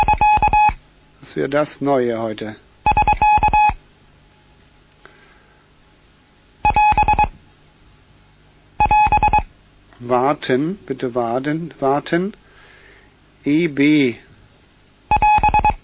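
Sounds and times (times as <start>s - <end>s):
traffic report end signal tone: 0.0s - 0.8s, 2.9s - 3.8s, 6.6s - 7.3s, 8.8s - 9.4s, 15.1s - 15.8s
speech: 1.3s - 2.7s, 10.0s - 12.4s, 13.4s - 14.2s.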